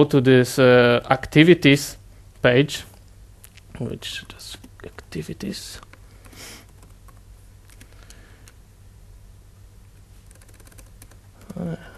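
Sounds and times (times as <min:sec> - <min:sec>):
speech: 0:00.0 - 0:02.9, 0:03.8 - 0:05.9, 0:11.6 - 0:11.9
steady low hum: 0:00.0 - 0:11.9
typing on a computer keyboard: 0:06.2 - 0:08.6, 0:10.2 - 0:11.6.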